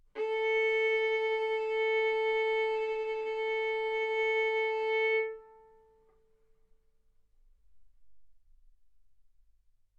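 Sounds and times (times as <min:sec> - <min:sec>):
violin bowed arco notes: 0:00.1 - 0:06.2.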